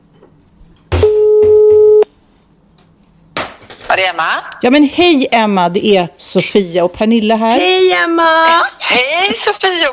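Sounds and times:
telephone call tone while dialing: 1.0s - 2.1s
speech: 4.0s - 9.9s.

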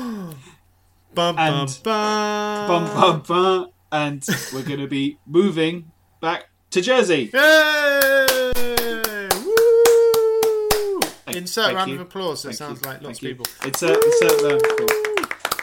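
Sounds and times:
speech: 1.2s - 8.4s, 11.4s - 15.0s
round of applause: 8.0s - 11.2s, 13.4s - 15.6s.

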